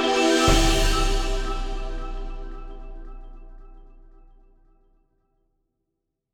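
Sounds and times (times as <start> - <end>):
cinematic stabs: 0.1 - 4.7.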